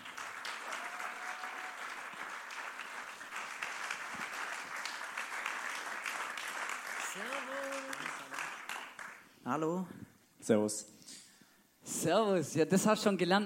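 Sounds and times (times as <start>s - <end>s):
audience applause: 0.0s - 9.3s
speech: 9.5s - 11.0s, 12.0s - 13.4s.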